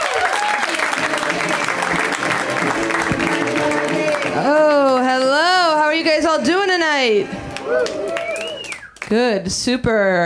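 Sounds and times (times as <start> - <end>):
audience applause for comedian: 0.0 - 5.4, 6.4 - 9.0
speech: 7.0 - 8.0, 9.1 - 10.2.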